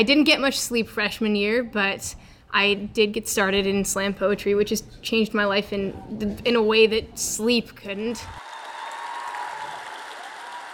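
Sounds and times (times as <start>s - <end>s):
speech: 0.0s - 8.5s
audience applause at a slam poetry event: 8.4s - 10.7s.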